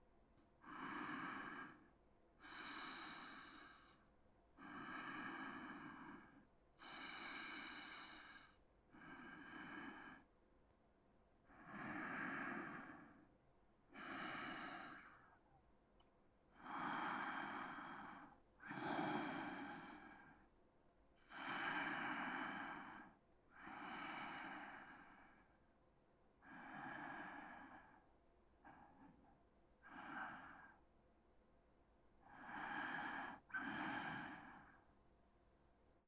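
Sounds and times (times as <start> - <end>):
person breathing in sleep: 0.6 - 10.3, 11.5 - 13.3, 13.9 - 15.5, 16.5 - 20.5, 21.2 - 25.6, 26.4 - 30.9, 32.2 - 34.9.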